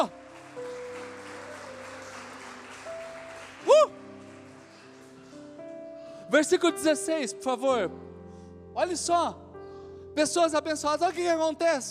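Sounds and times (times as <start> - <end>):
speech: 0.0 - 0.2, 6.3 - 8.1, 8.8 - 9.4, 10.2 - 11.8
audience applauding loudly: 0.0 - 5.7.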